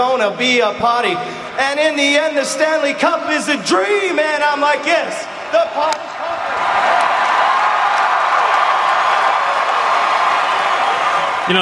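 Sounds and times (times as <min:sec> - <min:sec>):
speech: 0:00.1 - 0:06.0
crowd cheering: 0:04.4 - 0:11.5
clapping: 0:06.9 - 0:08.7.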